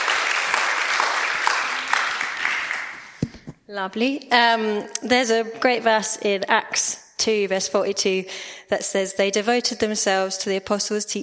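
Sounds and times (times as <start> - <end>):
audience applause: 0.0 - 3.2
speech: 3.7 - 11.2.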